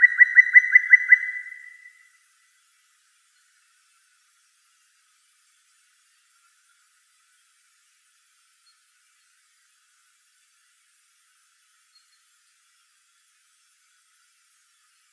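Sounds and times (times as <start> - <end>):
black woodpecker Dryocopus martius: 0.0 - 2.0.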